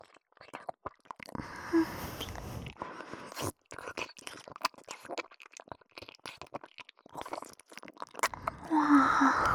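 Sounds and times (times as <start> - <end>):
ASMR ear licking voice: 1.3 - 3.4, 8.2 - 9.5.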